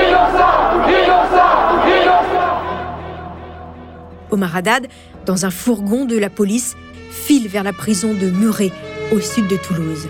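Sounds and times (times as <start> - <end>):
crowd chanting outside a courthouse: 0.0 - 3.9
speech: 4.3 - 10.0.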